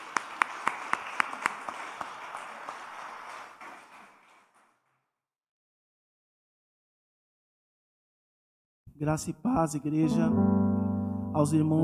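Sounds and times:
group clapping in unison then applause: 0.0 - 5.0
speech: 9.0 - 10.8, 11.4 - 11.8.

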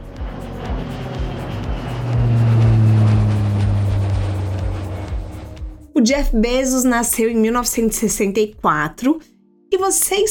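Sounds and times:
private jet engine taking off: 0.0 - 6.0
low pulsing beat: 0.0 - 8.9
speech: 6.0 - 10.2.

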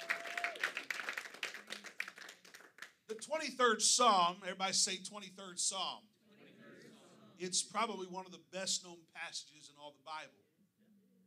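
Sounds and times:
audience clapping hands: 0.0 - 3.1
speech: 3.1 - 6.2, 7.4 - 10.5.

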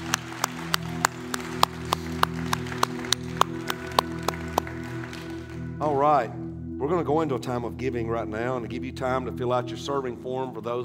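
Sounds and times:
audience clapping in rhythm: 0.0 - 6.1
low musical drone: 0.0 - 10.8
speech: 5.8 - 10.8.

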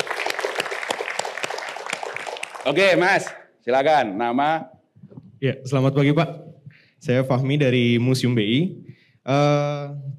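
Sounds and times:
audience applause: 0.0 - 3.3
speech: 2.6 - 4.8, 5.4 - 10.1.

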